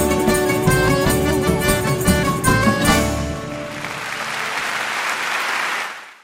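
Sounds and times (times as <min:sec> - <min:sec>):
song with sustained instrumental tones: 0:00.0 - 0:05.0
large crowd applause: 0:03.4 - 0:06.2.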